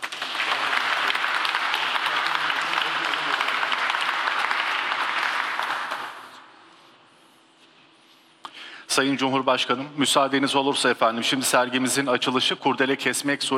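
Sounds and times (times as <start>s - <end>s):
audience applause at a formal exhibition opening ceremony: 0.0s - 6.4s
speech: 9.0s - 13.5s.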